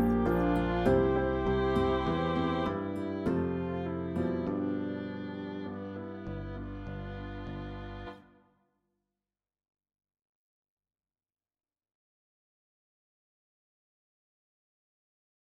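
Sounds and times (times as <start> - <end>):
low musical accompaniment: 0.0 - 8.4.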